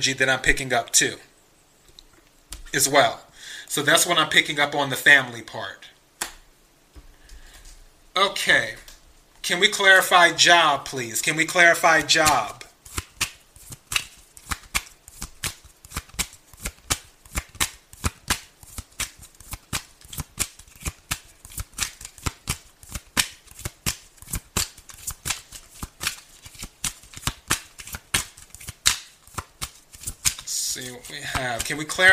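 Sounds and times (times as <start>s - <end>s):
speech: 0.0s - 1.3s, 2.7s - 5.9s, 8.2s - 8.8s, 9.4s - 12.6s, 31.7s - 32.1s
tarot cards being shuffled: 11.4s - 32.1s.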